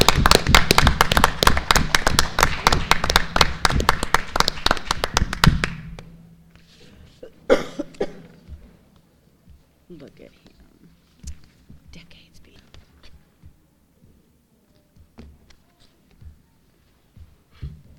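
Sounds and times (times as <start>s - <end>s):
crowd clapping: 0.0s - 6.1s.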